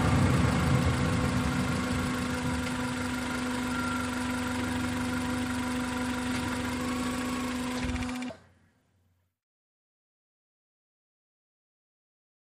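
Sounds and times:
compact small car driving at 25 to 35 mph: 0.0s - 8.5s.

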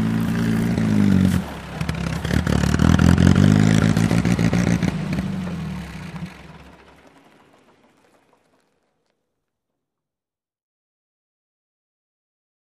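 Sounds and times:
army jeep driving: 0.0s - 8.9s.

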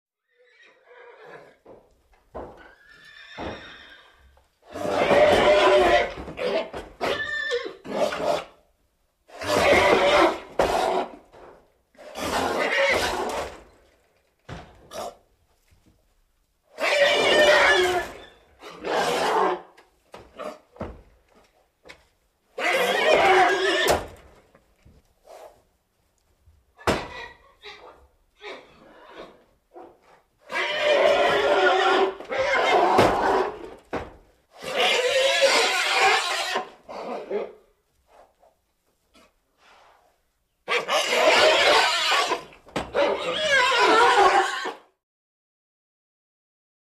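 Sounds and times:
horses whinnying: 0.2s - 1.6s, 2.5s - 8.5s, 9.3s - 11.2s, 12.1s - 13.6s, 16.8s - 19.7s, 22.6s - 24.2s, 30.5s - 33.8s, 34.6s - 37.5s, 40.7s - 44.9s.

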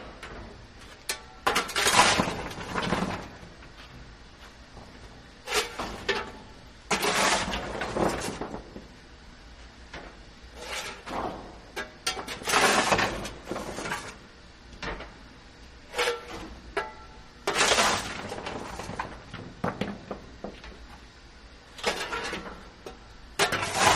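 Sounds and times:
shovel scooping coal on a steam train: 1.5s - 3.4s, 5.4s - 8.6s, 10.5s - 14.2s, 15.8s - 19.2s, 21.7s - 22.7s, 23.4s - 23.9s.

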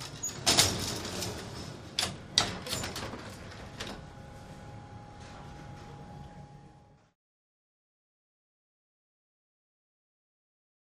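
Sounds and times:
old style elevator: 0.0s - 7.2s.

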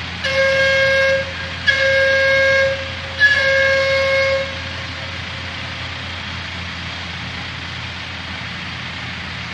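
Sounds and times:
blast site warning whistle at large construction site: 0.2s - 6.2s.

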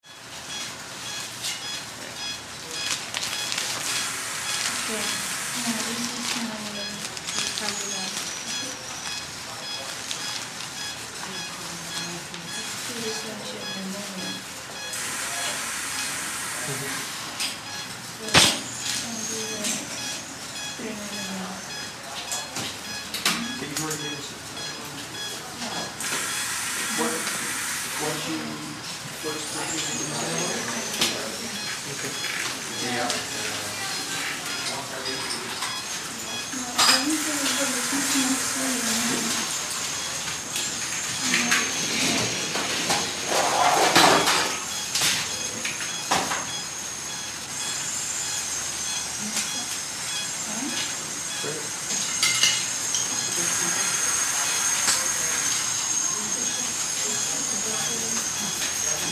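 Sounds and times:
hospital heart monitor: 0.0s - 59.0s
voices in a hospital operating room: 2.0s - 59.0s.

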